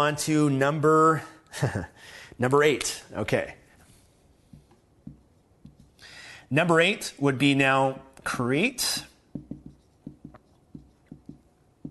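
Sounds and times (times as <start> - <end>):
speech: 0.0 - 3.6, 6.5 - 9.5
pen or pencil scratching as someone writes by hand on an angle: 9.3 - 11.9.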